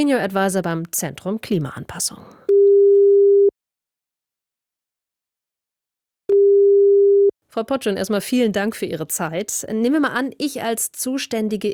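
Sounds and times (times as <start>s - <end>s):
speech: 0.0s - 2.5s, 7.5s - 11.7s
telephone ringing tone of outgoing call: 2.5s - 3.5s, 6.3s - 7.3s.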